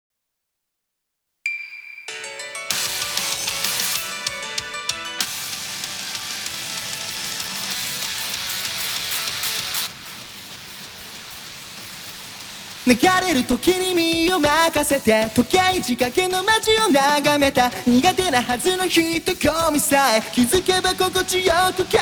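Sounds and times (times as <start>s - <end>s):
a cappella singing: 12.9s - 21.9s.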